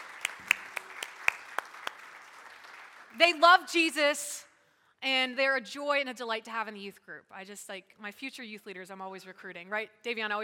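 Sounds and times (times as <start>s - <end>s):
youth group hand claps for two boys: 0.0s - 3.2s
speech: 3.2s - 10.4s.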